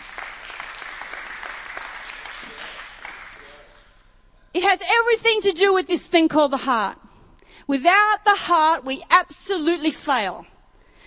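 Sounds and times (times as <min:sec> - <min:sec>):
audience applause: 0:00.0 - 0:03.8
speech: 0:04.6 - 0:07.0, 0:07.6 - 0:10.5.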